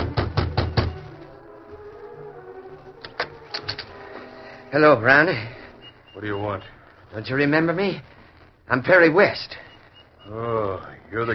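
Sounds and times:
knocks on a wooden cabin door: 0.0 - 1.0
low hum: 0.0 - 11.3
speech: 4.7 - 5.6, 6.2 - 8.1, 8.7 - 9.6, 10.3 - 11.3.

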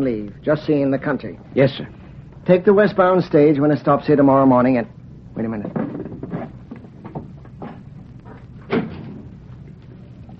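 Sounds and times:
speech: 0.0 - 5.8
floorboard creaking outside a door: 5.6 - 9.4.

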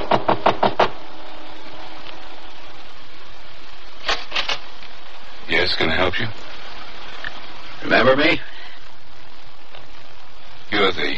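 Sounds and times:
knocking on a front door: 0.0 - 0.9
speech: 5.7 - 6.5, 7.8 - 8.5, 10.7 - 11.1.

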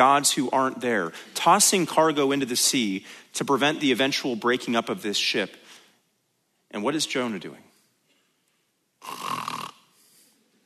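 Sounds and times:
speech: 0.0 - 5.6, 6.7 - 7.7
person imitating snoring: 9.0 - 10.0.

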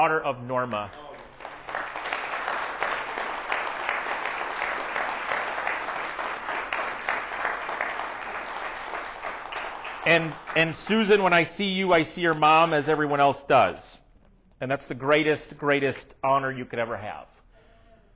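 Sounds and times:
speech: 0.0 - 1.0, 10.0 - 14.0, 14.6 - 17.3
audience applause: 1.0 - 11.4.

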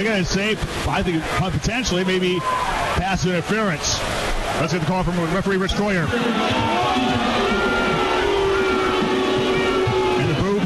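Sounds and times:
speech: 0.0 - 7.2
large crowd booing: 1.1 - 3.0, 6.0 - 10.6.

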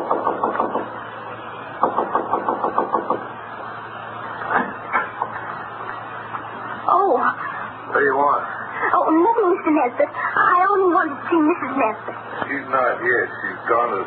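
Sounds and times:
knocking on a door: 0.0 - 0.9, 1.8 - 3.2
low steady hum: 0.0 - 14.0.

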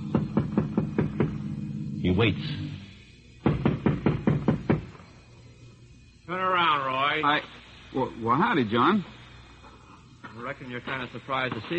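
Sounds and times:
knocking on a front door: 0.0 - 1.5, 3.4 - 5.0
speech: 2.0 - 2.7, 7.2 - 9.2, 10.4 - 11.7.

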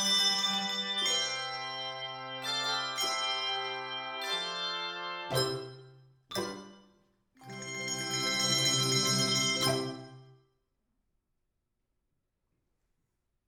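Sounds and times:
3-5 octave handbells ringing: 0.0 - 6.8, 7.4 - 10.2.

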